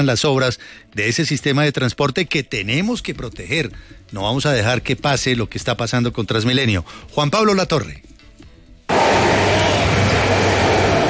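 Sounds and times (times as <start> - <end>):
speech: 0.0 - 8.1
low hum: 8.9 - 11.0
metro trains running on line 1: 8.9 - 11.0.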